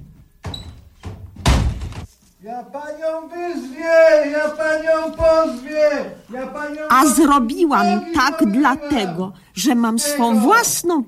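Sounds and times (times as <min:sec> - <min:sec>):
door slamming shut as a patient is pushed out: 0:00.0 - 0:02.1
sharp thuds: 0:00.4 - 0:02.1
speech: 0:02.4 - 0:11.0.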